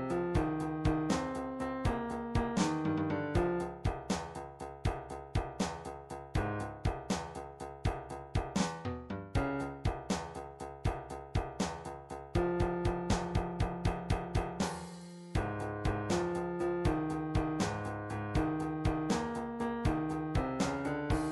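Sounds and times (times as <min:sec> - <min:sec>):
MIDI drums playing blues: 0:00.0 - 0:21.2.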